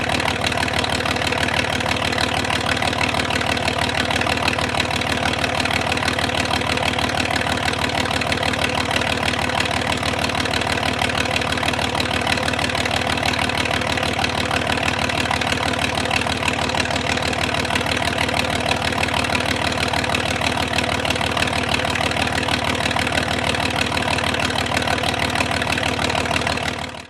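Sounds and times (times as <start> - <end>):
1939 Matilda Mark 2 tank engine idling, exhaust perspective: 0.0 - 27.0.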